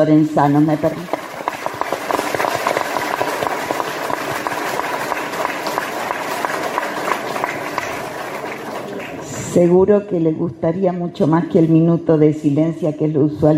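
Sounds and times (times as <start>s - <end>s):
speech: 0.0s - 1.2s, 9.5s - 13.5s
audience applause: 0.9s - 9.7s.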